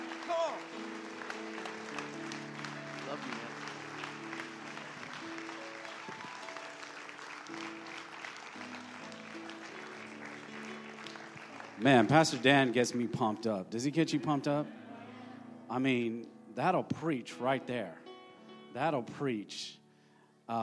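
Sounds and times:
audience in church clapping: 0.0s - 13.5s
speech: 11.8s - 14.8s, 15.7s - 18.0s, 18.8s - 19.8s, 20.5s - 20.6s.

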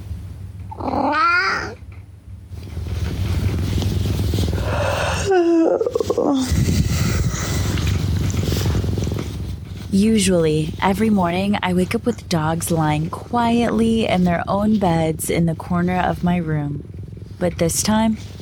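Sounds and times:
small cat giving high meow-like cries: 0.7s - 1.8s
small cat purring: 0.7s - 1.9s, 2.6s - 18.3s
speech: 9.9s - 18.3s.

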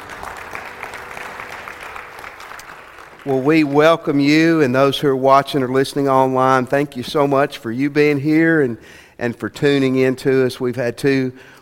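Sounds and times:
audience applause for the band at a church candlelight service: 0.0s - 4.4s
speech: 3.2s - 11.5s.

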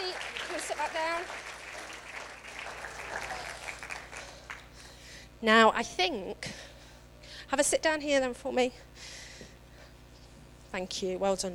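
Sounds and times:
audience clapping: 0.0s - 4.8s
speech: 0.6s - 1.5s, 5.4s - 6.7s, 7.5s - 9.2s, 10.8s - 11.5s.

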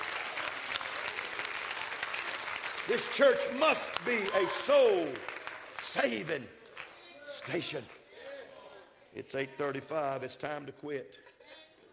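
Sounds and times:
audience clapping hands: 0.0s - 8.0s
speech: 2.9s - 5.3s, 6.0s - 6.6s, 7.4s - 8.0s, 9.2s - 11.7s.

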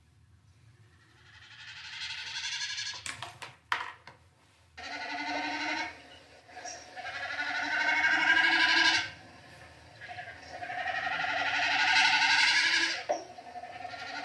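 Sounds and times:
snipe calling in bleat-like notes: 4.9s - 14.2s.

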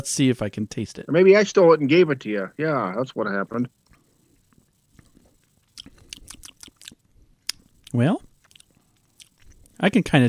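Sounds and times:
speech: 0.0s - 3.8s, 7.9s - 8.3s, 9.8s - 10.2s
pumpkin-pie-flavoured snack crunching: 3.8s - 9.8s.

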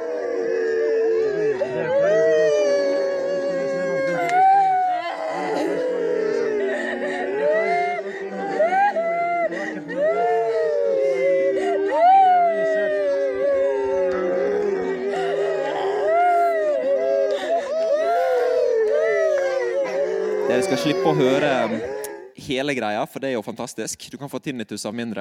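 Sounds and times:
crowd of people crying and wailing: 0.0s - 22.4s
laughter: 0.8s - 22.3s
speech: 20.8s - 21.9s, 22.5s - 25.1s.

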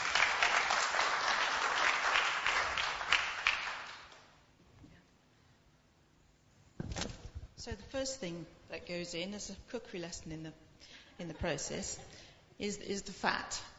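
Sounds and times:
crowd applauding: 0.0s - 4.2s
speech: 7.6s - 13.7s.

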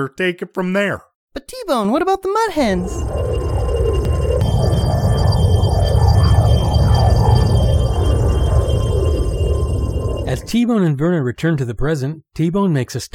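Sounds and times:
speech: 0.0s - 3.6s, 10.3s - 13.1s
flashback sound effect warbling tones: 2.6s - 10.6s
low hum: 2.6s - 10.6s.

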